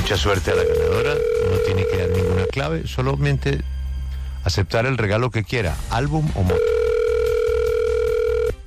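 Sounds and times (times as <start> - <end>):
speech: 0.1 - 3.7, 4.4 - 6.8
electronic telephone line ringing tone: 0.4 - 2.6, 6.5 - 8.6.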